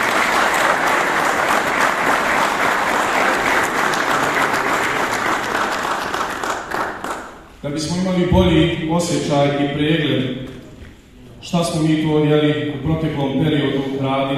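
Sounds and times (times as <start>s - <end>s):
audience applause at an Islamic community ceremony in Donji Vakuf: 0.0s - 7.4s
speech: 7.7s - 10.4s, 11.4s - 14.3s.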